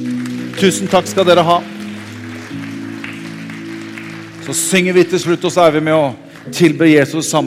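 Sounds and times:
speech: 0.0 - 1.8, 4.5 - 7.4
applause: 0.0 - 7.4.

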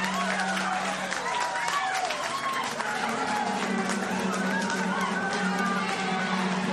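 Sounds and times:
excited shouting voices: 0.0 - 6.7
team clapping in celebration: 0.0 - 6.7.

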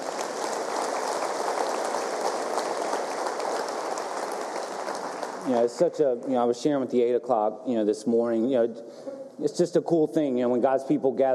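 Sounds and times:
large crowd clapping: 0.0 - 6.2
speech: 5.5 - 11.3.

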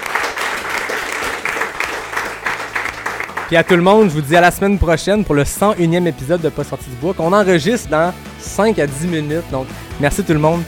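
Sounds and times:
audience applause: 0.0 - 3.9
speech: 3.5 - 10.6.

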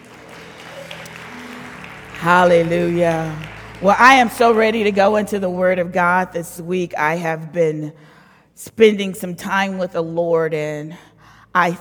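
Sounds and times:
audience hand clapping: 0.0 - 5.6
speech: 2.2 - 11.7.

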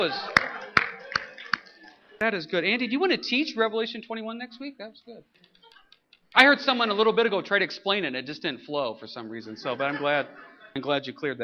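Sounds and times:
speech: 0.0 - 0.4, 2.2 - 5.5, 6.3 - 11.4
audience clapping: 0.0 - 2.2
laughter: 0.0 - 3.9, 5.4 - 6.6, 9.1 - 11.4.

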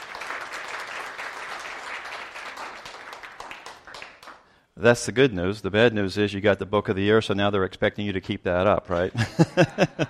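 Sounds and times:
audience applause congratulating an author on a book-of-the-year award: 0.0 - 4.4
speech: 4.8 - 10.0
laughter: 9.0 - 10.0.

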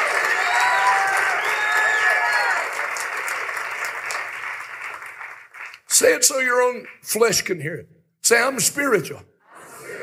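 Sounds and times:
scattered voices and faint whoops: 0.0 - 2.8
audience clapping: 0.0 - 7.3
speech: 6.0 - 9.3.

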